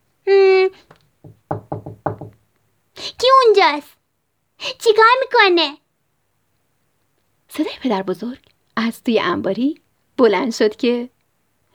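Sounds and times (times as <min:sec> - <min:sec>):
knuckles knocking on a barn door: 0:01.2 - 0:02.4
speech: 0:03.6 - 0:04.0, 0:04.7 - 0:05.8, 0:07.6 - 0:11.2.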